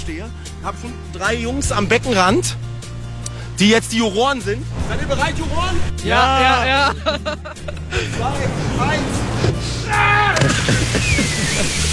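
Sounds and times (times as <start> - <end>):
speech: 0.1 - 2.7, 3.6 - 11.9
laughter: 6.4 - 8.6, 10.4 - 11.9
person yelling: 9.8 - 10.5.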